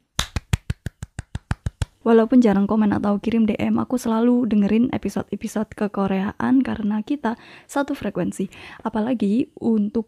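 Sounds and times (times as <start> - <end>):
hand clapping: 0.1 - 2.0
speech: 2.0 - 10.0.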